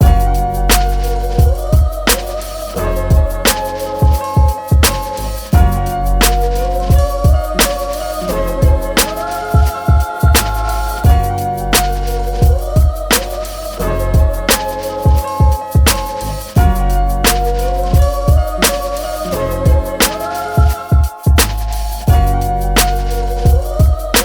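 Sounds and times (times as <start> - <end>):
instrumental music: 0.0 - 24.2.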